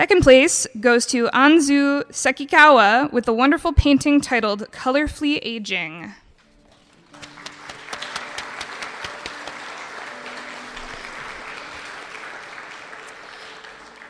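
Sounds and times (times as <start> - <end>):
speech: 0.0 - 6.2
audience applause: 6.7 - 14.0.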